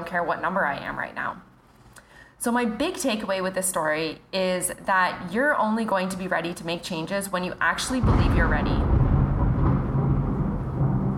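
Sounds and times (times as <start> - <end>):
speech: 0.1 - 1.5, 2.4 - 8.9
thunder rumbling during a storm: 7.8 - 11.1.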